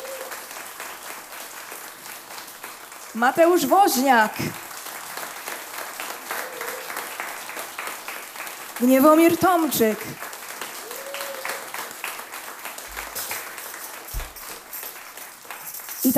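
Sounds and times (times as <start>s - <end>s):
audience applause: 0.0s - 16.1s
speech: 3.1s - 4.6s, 8.8s - 10.3s.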